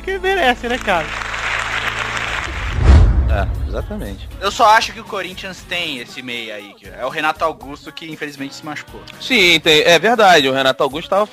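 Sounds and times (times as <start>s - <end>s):
speech: 0.0s - 1.2s, 2.8s - 11.3s
applause: 0.0s - 2.8s.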